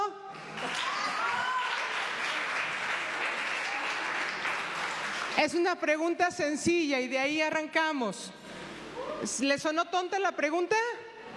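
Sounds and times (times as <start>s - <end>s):
audience applause: 0.4s - 5.4s
speech: 5.4s - 8.5s, 9.2s - 11.0s.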